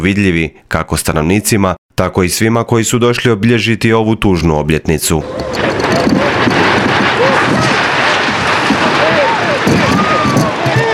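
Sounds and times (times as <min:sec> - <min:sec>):
speech: 0:00.0 - 0:06.4
crashing and rattling: 0:05.2 - 0:10.9
earthquake rumble: 0:05.2 - 0:10.9.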